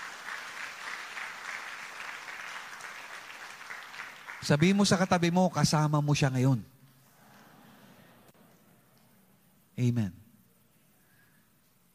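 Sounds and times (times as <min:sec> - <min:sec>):
church congregation applauding: 0:00.0 - 0:05.6
speech: 0:04.4 - 0:06.7, 0:09.8 - 0:10.2.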